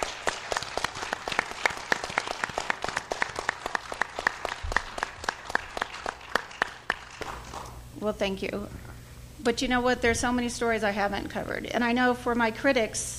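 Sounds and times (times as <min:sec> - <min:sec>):
audience applause: 0:00.0 - 0:07.8
speech: 0:08.0 - 0:08.8, 0:09.4 - 0:13.1.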